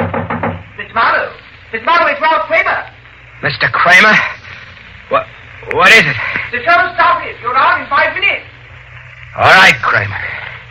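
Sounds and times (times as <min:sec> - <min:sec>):
knock on a door: 0:00.0 - 0:00.7
speech: 0:01.7 - 0:04.3, 0:05.1 - 0:08.5, 0:09.4 - 0:10.4.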